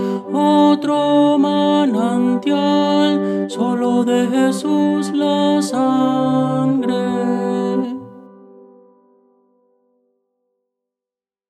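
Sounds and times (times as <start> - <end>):
tenor singing: 0.0 - 8.3.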